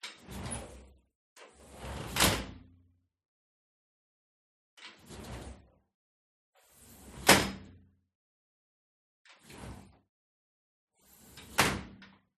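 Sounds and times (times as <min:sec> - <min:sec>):
metal sliding door in living room opening and closing hard, distant: 0:00.0 - 0:02.6, 0:04.8 - 0:05.8, 0:06.6 - 0:07.8, 0:09.3 - 0:10.0, 0:11.0 - 0:12.2.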